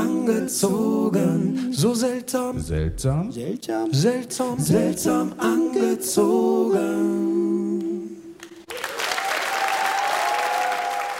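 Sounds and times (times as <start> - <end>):
speech: 0.5 - 7.3
applause: 8.5 - 11.1.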